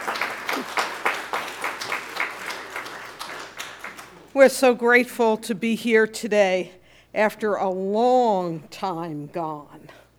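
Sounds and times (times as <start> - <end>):
crowd applauding: 0.0 - 4.3
speech: 4.4 - 10.0.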